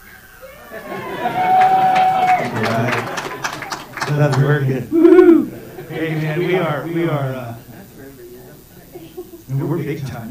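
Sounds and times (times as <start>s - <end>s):
crowd yelling and cheering outside: 0.2s - 8.1s
laughter: 0.4s - 10.2s
speech: 4.2s - 7.5s, 9.5s - 10.2s.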